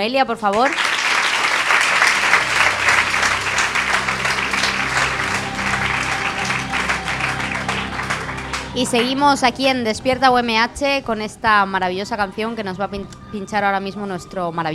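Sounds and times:
speech: 0.0s - 0.9s, 8.8s - 14.7s
audience applause: 0.5s - 9.6s.

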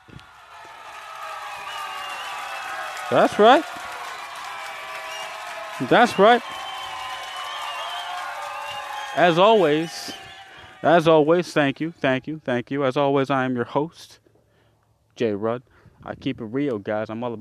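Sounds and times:
audience clapping: 0.0s - 11.6s
speech: 3.1s - 3.8s, 5.8s - 6.6s, 9.2s - 10.2s, 10.8s - 14.2s, 15.2s - 17.3s.

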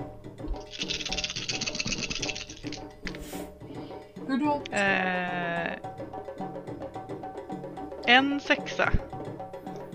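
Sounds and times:
soft musical bed: 0.0s - 9.9s
dice rattling and clattering: 0.6s - 2.8s
speech: 4.3s - 5.9s, 8.1s - 9.0s.

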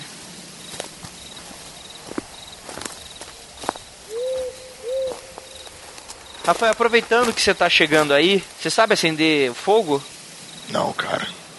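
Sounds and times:
crunchy footsteps: 0.0s - 10.6s
crickets in a night forest: 0.0s - 11.5s
owl hooting: 4.0s - 6.6s
speech: 6.4s - 11.5s.

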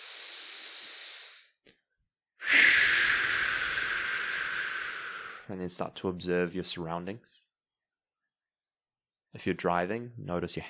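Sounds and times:
deep breath during a guided mindfulness exercise: 0.0s - 1.6s, 2.4s - 5.5s
speech: 5.5s - 7.5s, 9.3s - 10.6s.

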